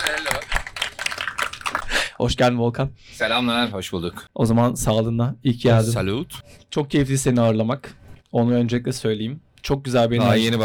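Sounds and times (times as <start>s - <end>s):
audience applause: 0.0s - 1.9s
speech: 2.2s - 10.6s.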